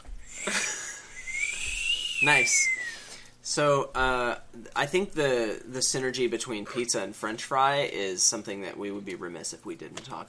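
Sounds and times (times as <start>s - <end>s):
breathy attempt at whistling: 0.2s - 3.3s
speech: 2.2s - 2.8s, 3.5s - 10.2s.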